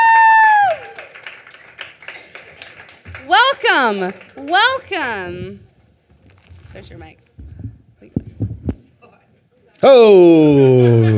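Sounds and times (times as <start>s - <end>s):
audience applause welcoming a guest on stage at a live show: 0.0s - 5.6s
speech: 3.8s - 5.7s, 6.8s - 7.2s, 9.8s - 11.1s.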